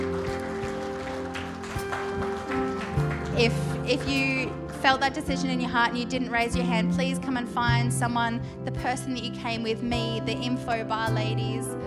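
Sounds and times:
audience applause: 0.0 - 4.8
speech: 3.4 - 11.8.

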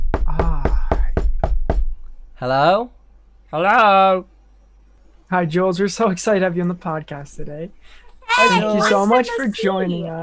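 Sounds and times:
knocking on a door: 0.0 - 2.0
speech: 2.4 - 4.3, 5.3 - 10.2.

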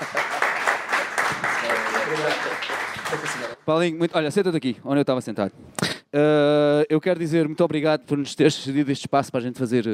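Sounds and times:
audience applause: 0.0 - 3.6
speech: 2.1 - 9.9.

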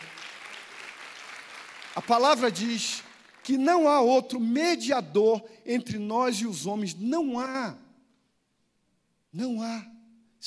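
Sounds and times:
audience applause: 0.0 - 3.6
speech: 2.0 - 7.8, 9.3 - 10.4.

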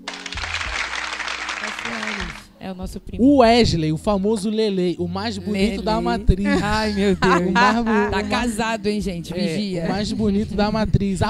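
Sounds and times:
crowd applause: 0.0 - 2.5
speech: 2.6 - 11.2
laughter: 5.4 - 8.6, 9.3 - 10.7
voices calling out: 6.6 - 8.6.

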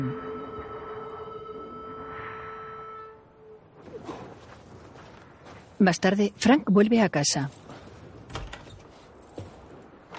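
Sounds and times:
speech: 5.8 - 7.6
door closing: 8.3 - 8.8.

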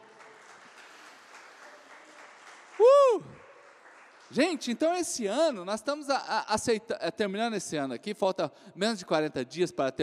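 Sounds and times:
audience applause: 0.0 - 5.0
speech: 4.3 - 10.0.

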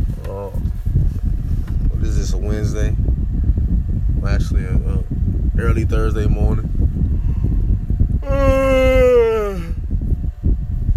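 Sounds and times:
low rumbling background: 0.0 - 10.9
speech: 2.4 - 3.1, 4.2 - 6.8
person yawning: 8.2 - 9.8.

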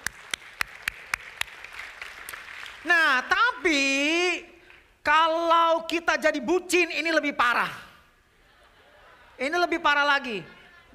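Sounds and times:
audience applause: 0.0 - 2.8
speech: 2.8 - 4.1, 5.1 - 7.8, 9.4 - 10.9
laughter: 8.3 - 9.8.

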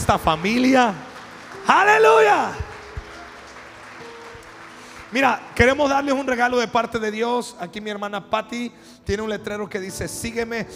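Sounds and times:
audience clapping: 0.0 - 6.8
speech: 0.1 - 2.6, 5.1 - 10.7.

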